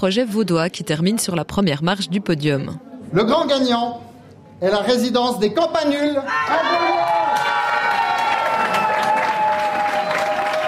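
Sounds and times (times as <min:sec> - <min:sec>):
speech: 0:00.0 - 0:04.0, 0:04.6 - 0:07.1
participants cheering for the winning team: 0:06.2 - 0:10.6
participants applauding the winning team at a competition prize announcement: 0:06.6 - 0:10.6.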